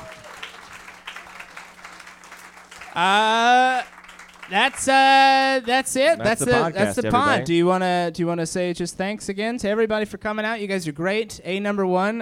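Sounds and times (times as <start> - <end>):
high-pitched whoops: 0.0 - 0.6
audience applause: 0.0 - 6.5
speech: 3.0 - 3.6, 4.5 - 12.2.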